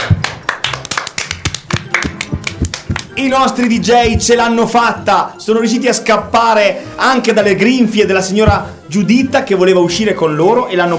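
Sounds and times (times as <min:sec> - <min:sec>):
scattered applause: 0:00.0 - 0:03.1
speech: 0:03.2 - 0:10.9.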